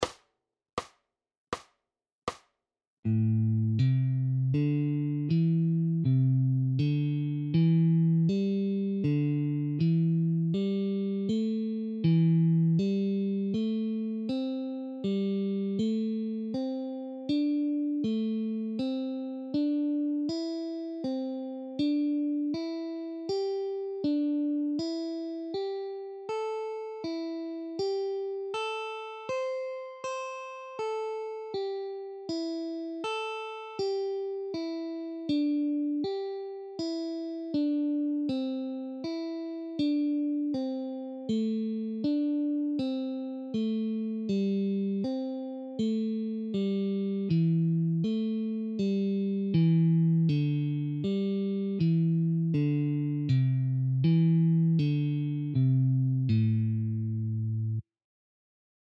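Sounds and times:
alternate picking guitar: 3.1 - 57.8.

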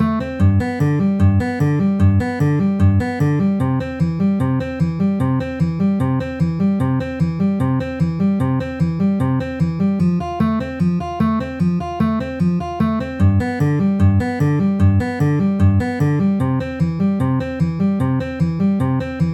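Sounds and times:
C F G C chord progression at 150 bpm: 0.0 - 19.3.

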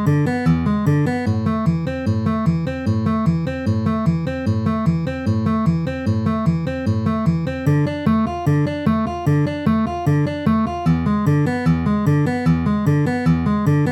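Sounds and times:
Dm E7 Am chord progression: 0.0 - 13.9.

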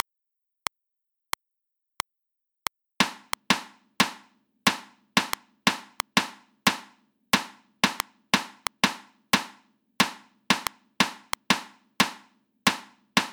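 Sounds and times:
reversed sixteenth-note rhythms at 90 BPM: 3.0 - 6.8, 7.8 - 13.3.

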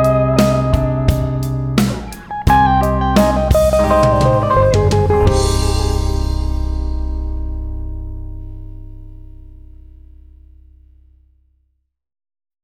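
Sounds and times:
hirajoshi scale melody: 0.0 - 9.8.

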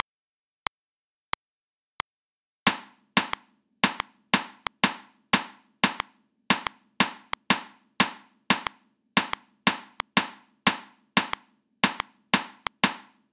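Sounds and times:
sixteenth-note rhythm: 2.7 - 13.1.

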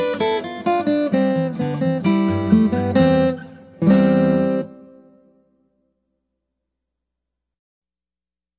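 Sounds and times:
guitar: 0.0 - 6.4.

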